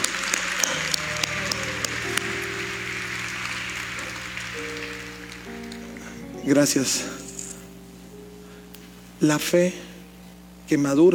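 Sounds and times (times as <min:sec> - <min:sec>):
crowd applauding: 0:00.0 - 0:07.5
sustained low musical tone humming: 0:00.0 - 0:11.1
speech: 0:06.5 - 0:07.2, 0:09.2 - 0:09.9, 0:10.7 - 0:11.1.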